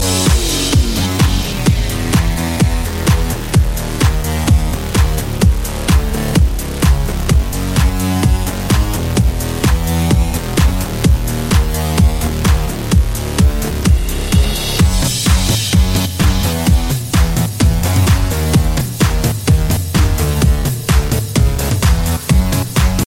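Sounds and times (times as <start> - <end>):
fierce tone: 0.0 - 22.8.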